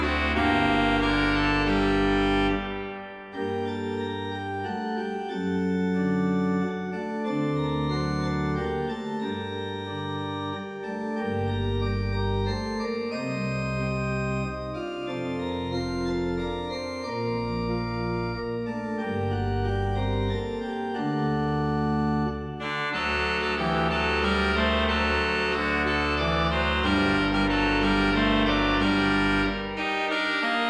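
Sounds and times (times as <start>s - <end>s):
trumpets: 0.0s - 4.0s, 22.6s - 30.6s
organ playing an air in G minor: 0.0s - 30.6s.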